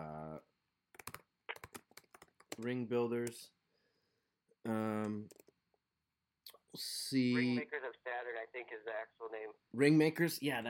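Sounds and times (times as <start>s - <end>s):
typing on a computer keyboard: 0.9s - 3.4s, 4.7s - 5.6s
speech: 2.6s - 3.6s, 4.6s - 5.4s, 6.7s - 10.6s.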